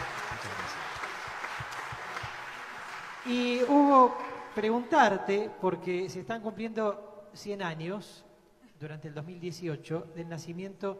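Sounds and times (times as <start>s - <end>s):
audience applause: 0.0s - 4.6s
speech: 3.3s - 10.9s.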